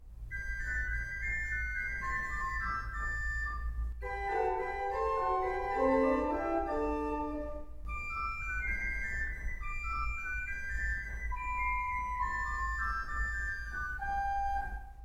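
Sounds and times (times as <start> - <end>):
keyboard sonata excerpt: 0.0 - 15.0.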